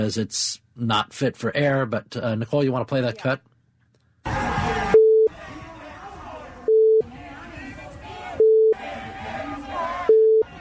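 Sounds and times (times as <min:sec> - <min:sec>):
speech: 0:00.0 - 0:03.5
crowd chanting: 0:04.3 - 0:10.6
censor bleeps: 0:05.0 - 0:05.3, 0:06.7 - 0:07.1, 0:08.4 - 0:08.8, 0:10.1 - 0:10.5.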